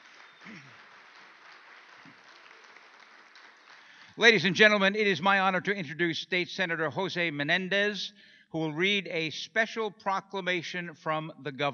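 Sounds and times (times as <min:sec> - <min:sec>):
audience applause: 0:00.0 - 0:04.7
speech: 0:04.2 - 0:11.7.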